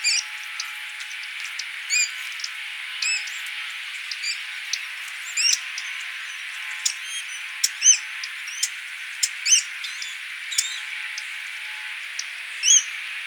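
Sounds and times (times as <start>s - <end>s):
Porzana carolina sora calls: 0.0s - 13.2s.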